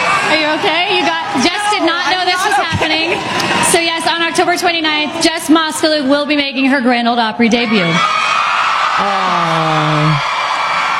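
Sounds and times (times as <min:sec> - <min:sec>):
crowd cheering: 0:00.0 - 0:06.4, 0:07.5 - 0:10.9
speech: 0:00.5 - 0:08.3, 0:09.0 - 0:10.3
person letting out a long held whoop: 0:09.0 - 0:10.5.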